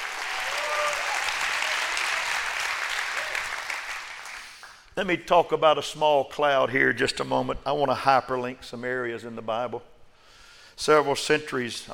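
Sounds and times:
audience clapping hands: 0.0s - 4.9s
speech: 5.0s - 9.9s, 10.8s - 11.9s.

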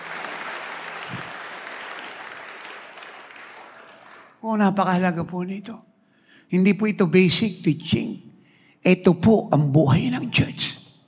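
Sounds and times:
faint applause from a church congregation: 0.0s - 4.4s
speech: 4.4s - 5.9s, 6.5s - 10.7s.

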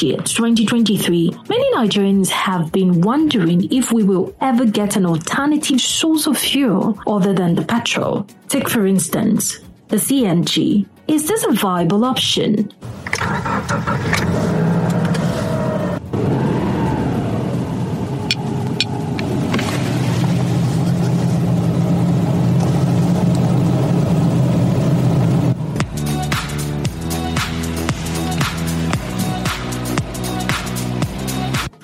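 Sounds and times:
speech: 0.0s - 14.6s
CNG-powered car engine rumble: 12.8s - 31.4s
road noise from a CNG-powered car: 12.8s - 31.4s.

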